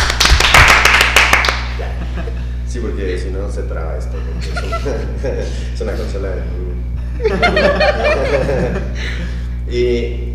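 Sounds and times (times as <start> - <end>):
audience clapping cued as euphoric applause: 0.0 - 1.8
steady low hum: 0.0 - 10.3
laughter: 1.8 - 2.6, 4.1 - 6.1, 7.0 - 9.4
speech: 2.8 - 10.3.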